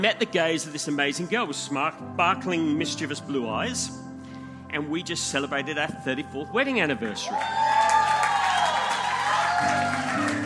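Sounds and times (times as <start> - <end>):
speech: 0.0 - 4.0, 4.7 - 7.7, 9.6 - 10.4
audience clapping: 6.9 - 10.4.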